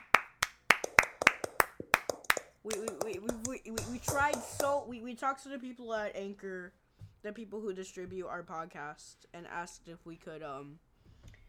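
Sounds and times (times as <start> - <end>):
hands clapping: 0.0 - 4.8
speech: 2.6 - 10.9.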